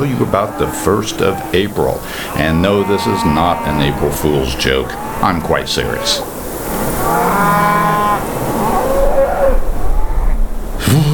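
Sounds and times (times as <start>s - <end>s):
cows mooing: 0.0s - 10.5s
steady rushing noise: 0.0s - 11.1s
speech: 0.1s - 7.6s.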